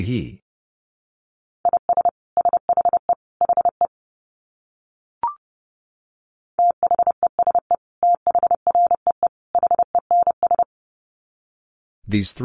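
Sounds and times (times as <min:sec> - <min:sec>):
speech: 0:00.0 - 0:00.4, 0:12.1 - 0:12.4
Morse code beeps at 30 wpm: 0:01.6 - 0:03.9, 0:06.6 - 0:10.7.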